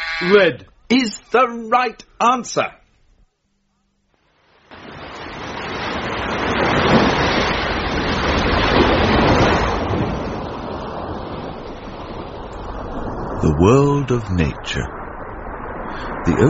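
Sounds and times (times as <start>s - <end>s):
speech: 0.2s - 2.8s, 13.4s - 15.0s, 16.2s - 16.4s
ocean waves and surf: 4.2s - 16.4s.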